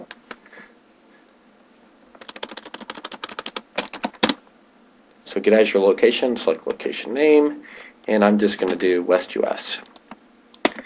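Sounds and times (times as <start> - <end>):
rapid typing on a computer keyboard: 2.2 - 4.4, 9.8 - 10.8
speech: 5.4 - 9.9.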